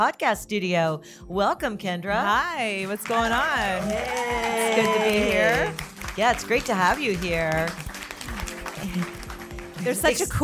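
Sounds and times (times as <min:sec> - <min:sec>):
speech: 0:00.0 - 0:07.8, 0:08.8 - 0:09.2, 0:09.8 - 0:10.4
applause: 0:02.8 - 0:10.4.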